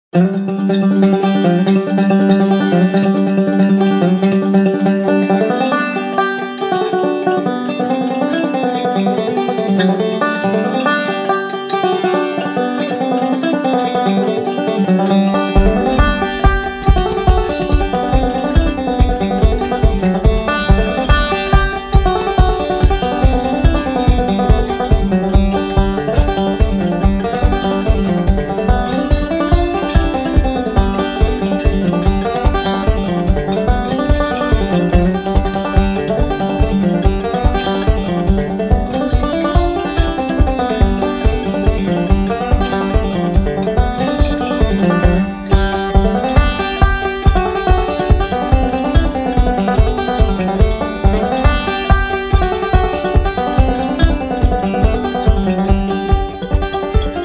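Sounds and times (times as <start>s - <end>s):
banjo playing a polska: 0.0s - 57.2s.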